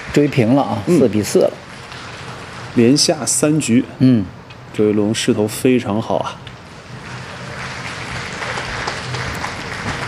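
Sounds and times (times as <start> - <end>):
speech: 0.2 - 1.7, 2.8 - 6.5
audience applause from a nearby snooker table: 6.9 - 10.0.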